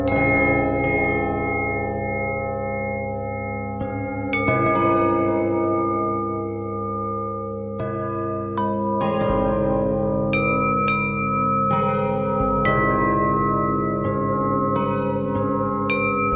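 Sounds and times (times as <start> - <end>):
bell harmonic twist: 0.0 - 16.3.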